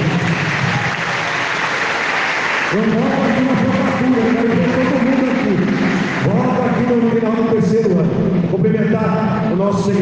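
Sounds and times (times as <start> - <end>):
audience applause: 0.0 - 7.2
speech: 2.7 - 4.9, 5.5 - 10.0.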